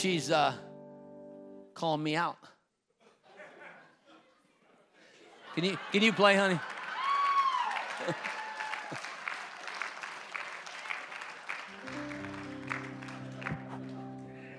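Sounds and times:
speech: 0:00.0 - 0:00.7, 0:01.8 - 0:02.5, 0:05.6 - 0:06.7, 0:08.0 - 0:08.3
laughter: 0:03.0 - 0:07.1, 0:07.9 - 0:09.2
audience clapping: 0:05.5 - 0:14.5.

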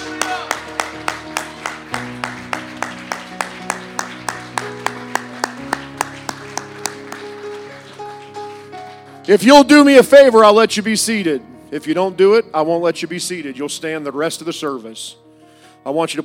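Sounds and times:
audience clapping hands: 0:00.0 - 0:09.2
speech: 0:09.3 - 0:16.2.

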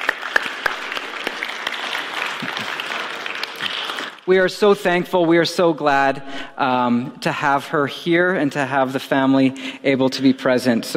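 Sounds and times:
audience clapping: 0:00.0 - 0:04.3
speech: 0:04.3 - 0:10.9.

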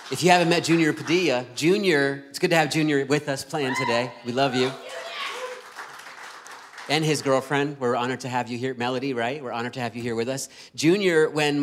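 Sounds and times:
audience applause: 0:00.0 - 0:01.3, 0:04.4 - 0:07.4
speech: 0:00.1 - 0:05.0, 0:06.9 - 0:11.6.

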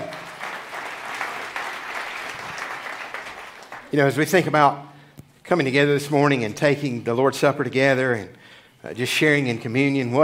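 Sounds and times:
audience applause for the band: 0:00.0 - 0:03.9
speech: 0:03.9 - 0:04.9, 0:05.5 - 0:10.2.

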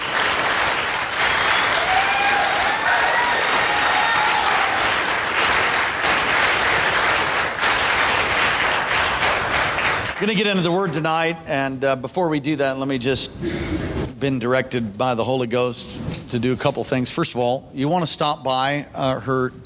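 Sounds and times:
audience applause and hand clapping: 0:00.0 - 0:10.7
faint whoops and cheers: 0:01.4 - 0:05.0
speech: 0:10.2 - 0:19.6.

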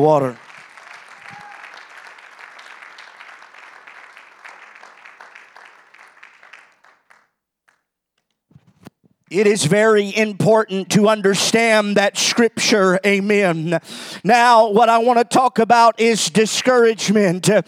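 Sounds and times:
speech: 0:00.0 - 0:00.4, 0:09.3 - 0:17.6
audience clapping: 0:00.0 - 0:07.9.

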